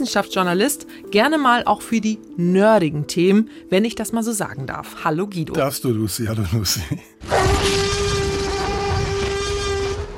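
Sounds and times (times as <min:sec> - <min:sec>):
speech: 0:00.0 - 0:07.8
Tyrannosaurus rex roaring: 0:07.2 - 0:10.1.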